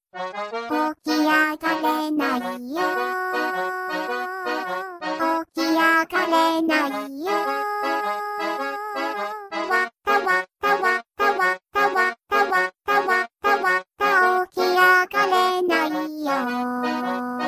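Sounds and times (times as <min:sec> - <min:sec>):
adorable tone: 0:00.7 - 0:17.4.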